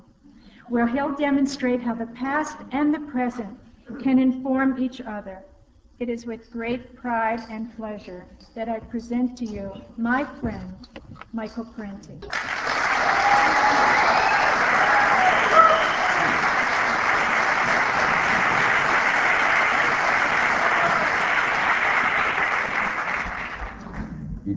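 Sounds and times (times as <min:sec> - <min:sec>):
speech: 0:00.7 - 0:14.2
audience applause: 0:12.3 - 0:24.1.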